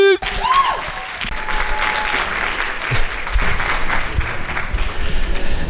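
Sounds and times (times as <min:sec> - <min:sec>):
audience applause and clapping: 0:00.2 - 0:05.6.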